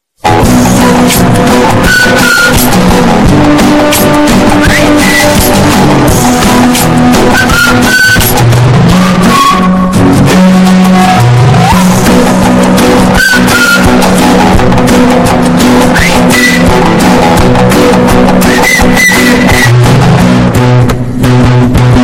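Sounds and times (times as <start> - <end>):
boosted bass: 0.0 - 22.0.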